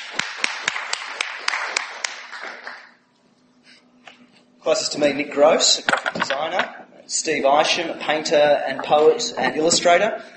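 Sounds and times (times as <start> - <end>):
audience clapping in welcome: 0.0 - 3.0
speech: 4.7 - 10.3.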